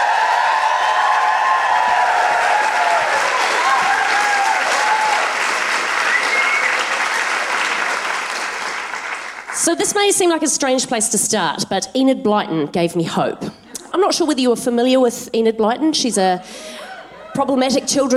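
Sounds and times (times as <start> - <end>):
large audience applauding as a performer is welcomed onto a stage: 0.0 - 9.7
speech: 9.7 - 16.8, 17.4 - 18.1.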